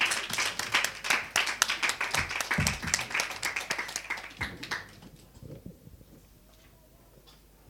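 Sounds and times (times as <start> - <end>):
audience clapping: 0.0 - 5.4.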